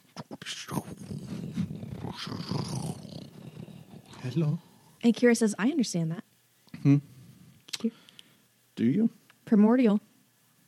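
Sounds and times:
voice imitating a creature's crackling fire-like sound: 0.2s - 4.7s
speech: 4.2s - 7.1s, 8.8s - 10.1s.

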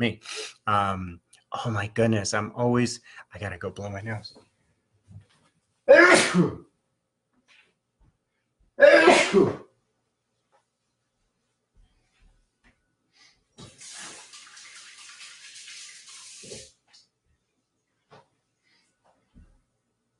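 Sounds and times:
speech: 0.0s - 4.4s, 5.9s - 6.7s, 8.8s - 9.6s
water running while washing hands: 13.6s - 17.1s.

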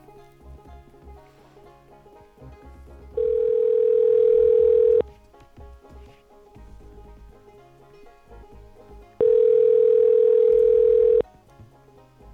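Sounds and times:
telephone dial tone while calling a phone number: 3.2s - 5.0s, 9.2s - 11.2s.

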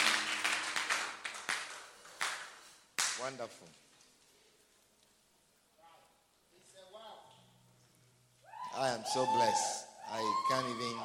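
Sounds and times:
crowd clapping: 0.0s - 3.4s
speech: 3.2s - 3.9s, 8.8s - 11.0s.

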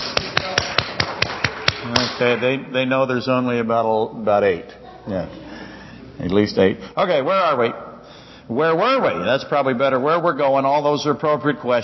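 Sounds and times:
small audience applauding: 0.0s - 2.6s
speech: 1.8s - 5.5s, 6.2s - 7.8s, 8.5s - 11.8s.

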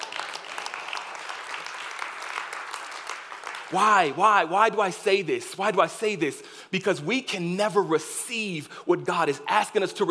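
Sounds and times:
audience clapping hands: 0.0s - 4.9s
speech: 3.7s - 10.1s.

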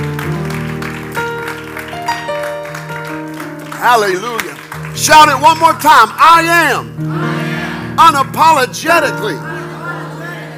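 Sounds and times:
audience applauding: 0.0s - 6.2s
speech: 3.8s - 7.3s, 8.0s - 9.5s.

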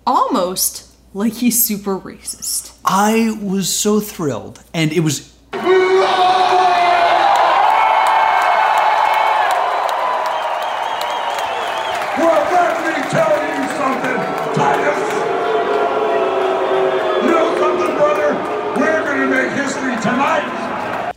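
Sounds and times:
speech: 0.0s - 6.4s
arena crowd cheering: 5.5s - 21.1s.

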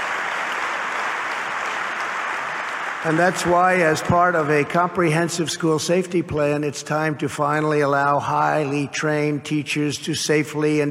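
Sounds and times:
crowd applauding: 0.0s - 4.8s
speech: 3.0s - 10.8s.

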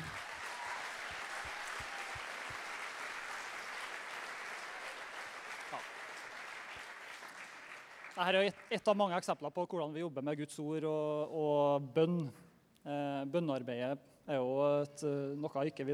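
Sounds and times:
audience applause: 0.0s - 8.7s
speech: 5.7s - 6.0s, 8.2s - 15.9s.

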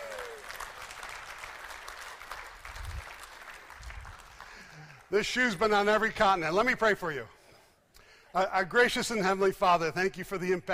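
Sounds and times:
audience applause: 0.0s - 5.1s
speech: 5.1s - 7.4s, 8.4s - 10.7s.

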